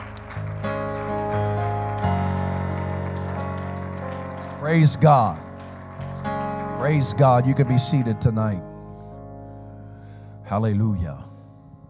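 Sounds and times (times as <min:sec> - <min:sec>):
audience clapping hands: 0:00.0 - 0:08.2
organ or keyboard chords: 0:00.0 - 0:11.8
speech: 0:04.6 - 0:05.5, 0:06.8 - 0:08.7, 0:10.5 - 0:11.3.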